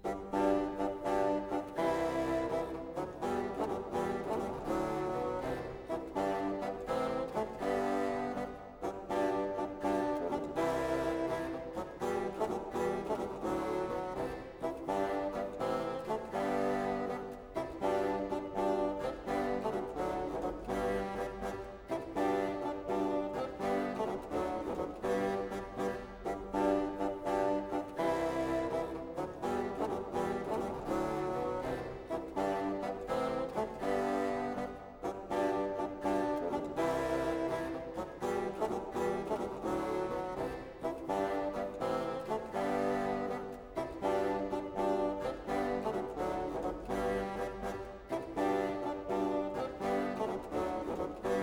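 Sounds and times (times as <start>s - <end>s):
bassoon: 0.0s - 51.4s.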